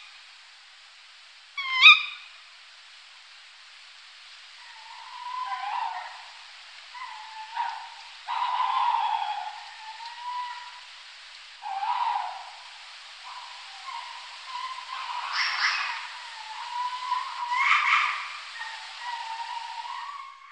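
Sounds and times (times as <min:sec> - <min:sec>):
tawny owl hooting: 0:01.6 - 0:02.4, 0:04.6 - 0:10.9, 0:11.6 - 0:20.5.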